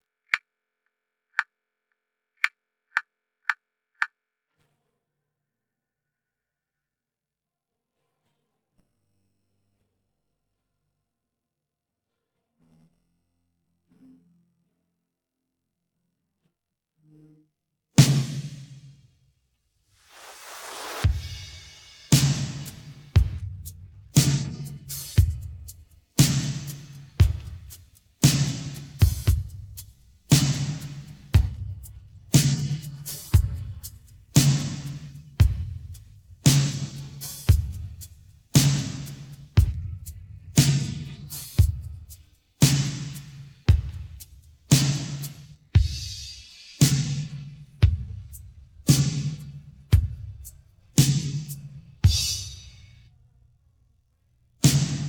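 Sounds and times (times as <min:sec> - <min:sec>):
drums: 0:18.0 - 0:19.0, 0:20.0 - 0:53.0, 0:54.6 - 0:55.0.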